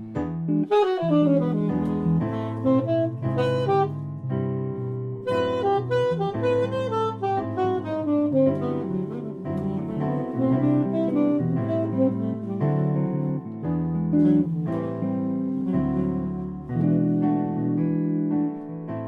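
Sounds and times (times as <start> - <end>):
jazz duo playing: 0.0 - 19.0.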